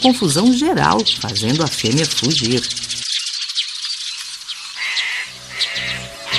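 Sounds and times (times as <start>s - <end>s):
speech: 0.0s - 3.0s
male bird calling: 0.0s - 6.3s
low buzzy harmonic tone: 5.3s - 6.3s.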